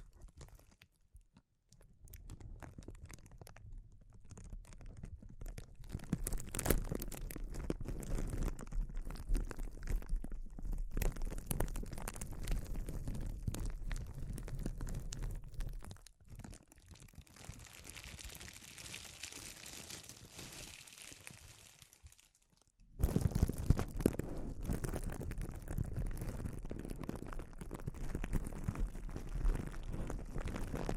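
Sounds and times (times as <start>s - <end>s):
sensitive crinkling and crunching: 0.0s - 30.9s.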